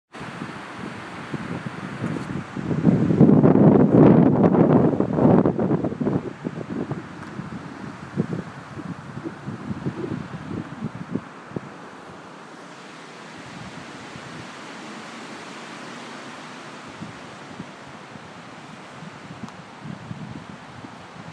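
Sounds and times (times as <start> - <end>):
wind at Wells: 0.1 - 21.3.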